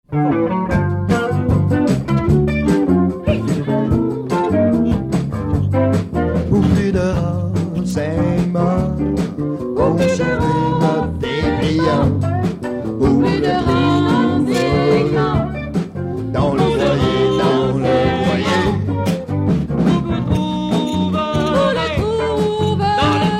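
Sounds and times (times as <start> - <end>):
rock jingle: 0.1 - 23.3.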